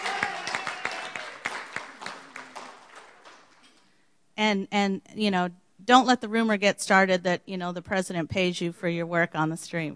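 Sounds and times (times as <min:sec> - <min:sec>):
audience applause: 0:00.0 - 0:03.7
speech: 0:04.4 - 0:09.9.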